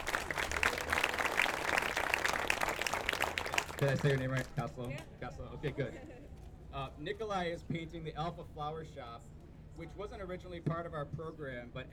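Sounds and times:
audience applause: 0.0 - 4.6
speech: 3.8 - 6.2, 6.8 - 11.9.

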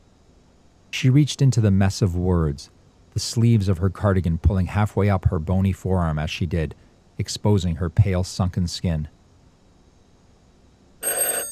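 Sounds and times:
speech: 0.9 - 9.2
synthesized electronic telephone ring: 11.0 - 11.5.

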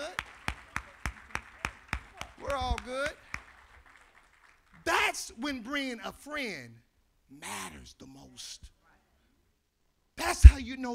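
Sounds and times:
audience clapping hands: 0.0 - 5.0
speech: 5.1 - 8.8, 10.2 - 10.9.

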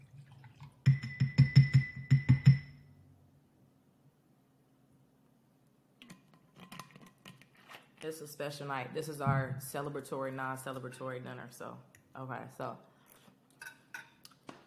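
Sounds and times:
kombucha poured into a glass: 0.0 - 1.5
speech: 8.0 - 12.9.

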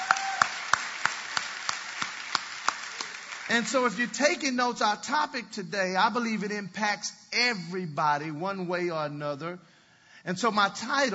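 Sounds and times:
audience clapping: 0.0 - 4.4
speech: 3.5 - 11.1.

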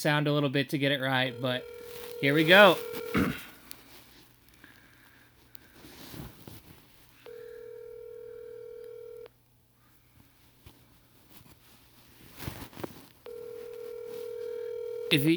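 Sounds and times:
speech: 0.0 - 3.4, 15.1 - 15.3
telephone call ringback tones: 1.1 - 3.4, 7.3 - 9.3, 13.3 - 15.3.

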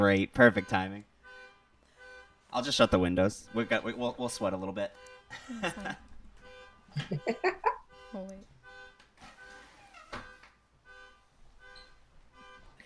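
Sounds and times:
speech: 0.0 - 1.1, 2.5 - 6.0, 6.9 - 8.5
car alarm sounding outside: 0.0 - 12.8
voices and laughter: 5.3 - 6.3, 6.9 - 7.9.

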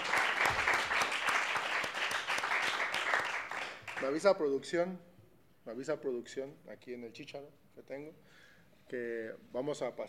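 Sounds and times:
audience clapping: 0.0 - 4.3
speech: 4.0 - 10.0.

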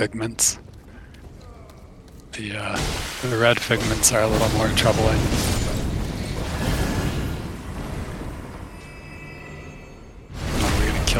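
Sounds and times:
speech: 0.0 - 0.8, 2.3 - 5.6
enemies exploding in a video game: 2.6 - 8.8, 10.3 - 11.1.

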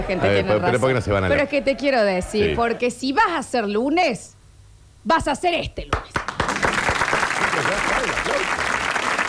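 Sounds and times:
speech: 0.1 - 4.4, 5.0 - 6.3
studio audience applauding: 6.0 - 9.2.

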